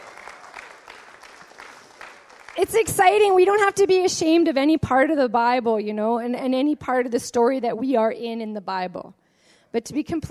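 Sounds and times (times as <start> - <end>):
audience applauding: 0.0 - 3.2
speech: 2.6 - 10.2.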